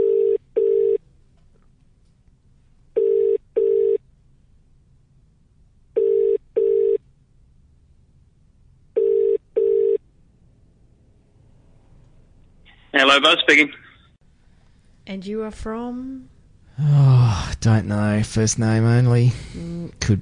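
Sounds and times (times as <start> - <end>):
telephone ringing tone: 0.0 - 1.0, 3.0 - 4.0, 6.0 - 7.0, 9.0 - 10.0
speech: 13.2 - 13.9, 15.1 - 20.2.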